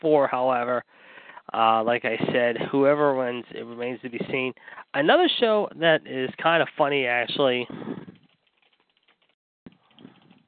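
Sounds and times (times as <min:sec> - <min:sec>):
speech: 0:00.0 - 0:08.1
typing on a keyboard: 0:08.2 - 0:10.4.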